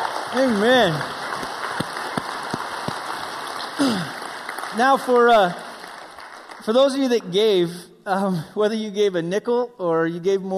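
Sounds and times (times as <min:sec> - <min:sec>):
speech: 0:00.0 - 0:01.2, 0:03.8 - 0:04.0, 0:04.8 - 0:05.6, 0:06.6 - 0:10.5
crowd applauding: 0:00.0 - 0:07.6.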